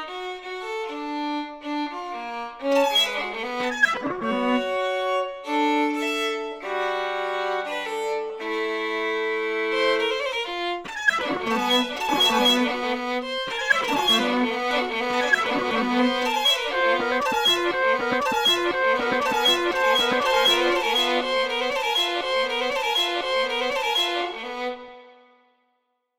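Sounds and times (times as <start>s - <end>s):
violin: 0.0s - 25.6s
electronics: 11.1s - 12.8s, 13.5s - 22.1s.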